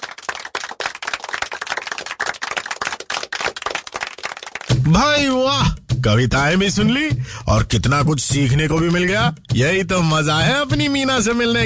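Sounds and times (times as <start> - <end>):
crowd applause: 0.0 - 4.8
speech: 4.8 - 11.6.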